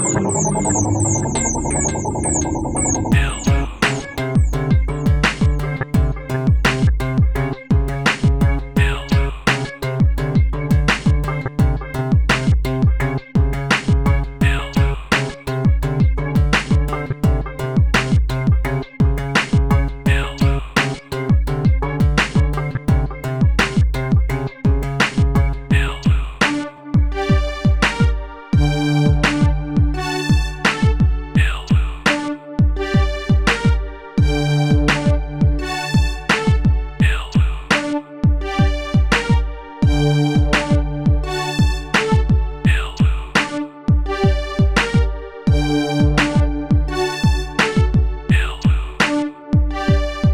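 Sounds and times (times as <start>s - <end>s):
drum synth beat: 0.1s - 50.3s.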